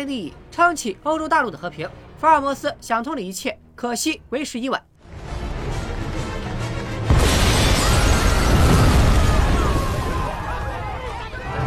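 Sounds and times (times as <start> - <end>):
speech: 0.0 - 4.9
bomb explosion in film scene: 7.0 - 11.3
crackling shattering debris: 7.1 - 11.5.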